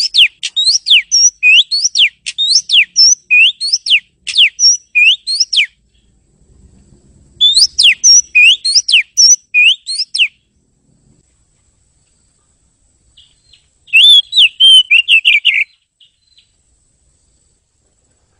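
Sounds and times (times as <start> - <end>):
bird whistling bright pure notes: 0.0 - 5.8, 7.4 - 10.4, 13.2 - 16.5.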